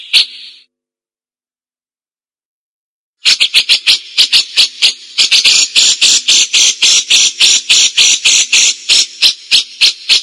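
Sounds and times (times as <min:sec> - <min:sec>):
cililin buzzy chattering: 0:03.2 - 0:10.2.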